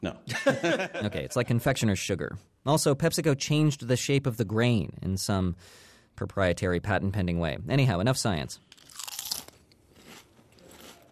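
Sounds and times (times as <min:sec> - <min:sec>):
speech: 0:00.0 - 0:08.7
laughter: 0:00.3 - 0:01.5
crunching Lay's reduced salt potato chips: 0:08.7 - 0:11.0.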